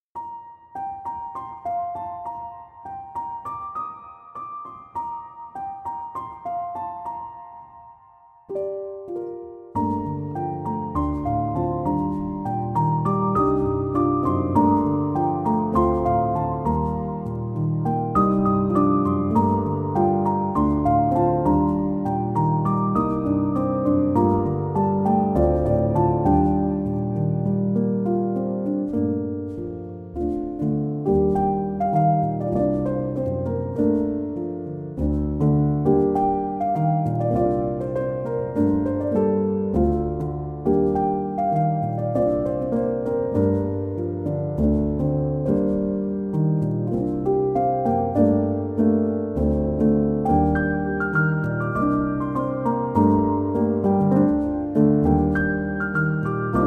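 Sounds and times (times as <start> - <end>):
piano instrumental: 0.1 - 56.6.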